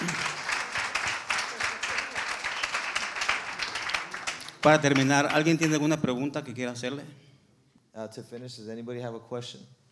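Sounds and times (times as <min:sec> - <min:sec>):
church congregation clapping for a young man: 0:00.0 - 0:06.0
speech: 0:04.6 - 0:07.2, 0:08.0 - 0:09.8.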